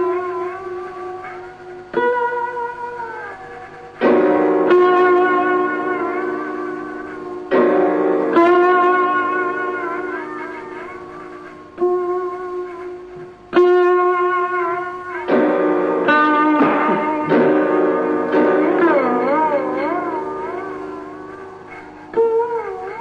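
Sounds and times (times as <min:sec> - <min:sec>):
Punjabi folk music: 0:00.1 - 0:23.0.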